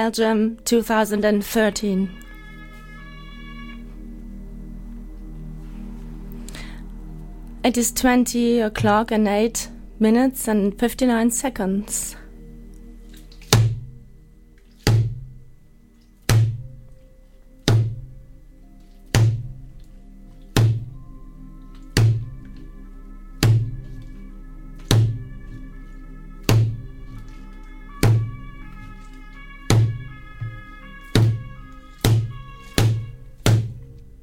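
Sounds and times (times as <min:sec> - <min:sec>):
speech: 0:00.0 - 0:02.3, 0:07.6 - 0:12.2
low ringing tone: 0:01.7 - 0:34.2
drums played during a band soundcheck in Belgium: 0:19.2 - 0:19.5, 0:23.4 - 0:23.8, 0:24.9 - 0:25.3, 0:26.4 - 0:26.8, 0:28.0 - 0:28.4, 0:29.7 - 0:33.8.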